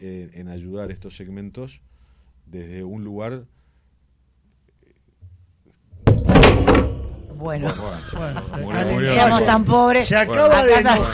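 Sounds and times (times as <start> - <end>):
speech: 0.0 - 3.6, 7.4 - 11.1
man angrily striking a microphone: 6.0 - 7.4
laughter: 7.6 - 11.1.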